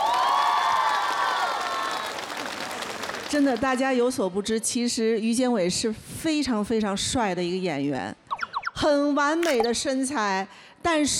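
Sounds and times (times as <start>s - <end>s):
audience applause: 0.0s - 3.8s
speech: 3.3s - 8.2s, 8.8s - 11.1s.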